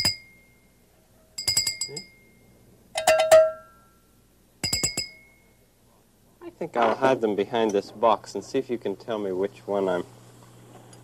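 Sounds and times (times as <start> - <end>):
porcelain bell tinkling: 0.0 - 0.7, 1.4 - 4.0, 4.6 - 5.6
cowbell clanking: 1.4 - 2.4, 3.0 - 3.8, 4.6 - 5.4
speech: 1.9 - 2.1, 6.6 - 10.2.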